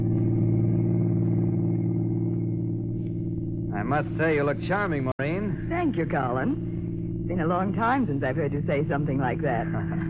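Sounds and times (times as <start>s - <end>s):
car rolling smoothly along a highway: 0.0s - 10.0s
speech: 3.9s - 6.7s, 7.3s - 10.0s.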